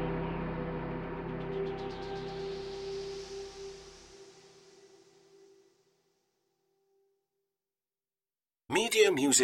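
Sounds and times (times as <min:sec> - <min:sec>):
ambient underscore: 0:00.0 - 0:05.9.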